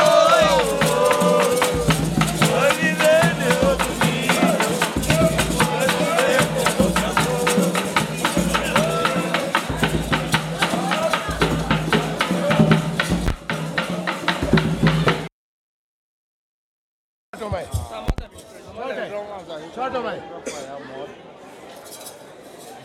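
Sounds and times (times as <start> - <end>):
batuque de umbigada drumming in Tiete: 0.0 - 15.3.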